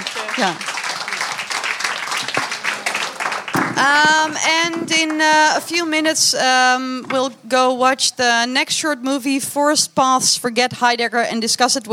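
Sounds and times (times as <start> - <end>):
audience applause: 0.0 - 5.7
speech: 0.4 - 0.7, 3.8 - 11.9.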